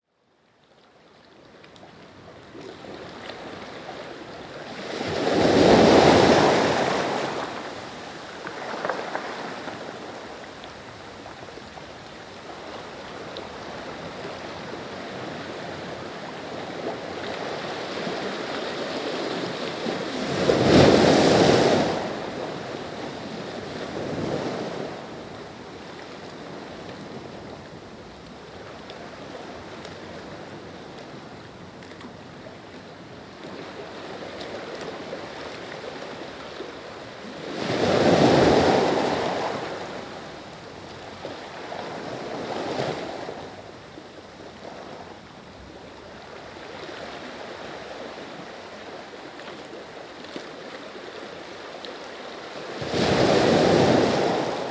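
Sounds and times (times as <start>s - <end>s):
waves: 0.3s - 54.6s.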